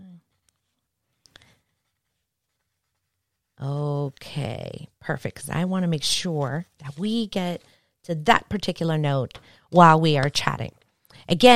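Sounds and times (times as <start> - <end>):
pen writing on paper: 1.7 - 4.6, 5.2 - 7.7
speech: 3.6 - 11.5.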